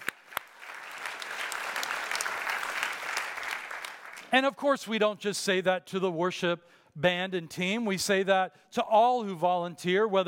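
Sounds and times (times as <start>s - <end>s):
audience applauding: 0.0s - 4.3s
speech: 4.3s - 10.2s.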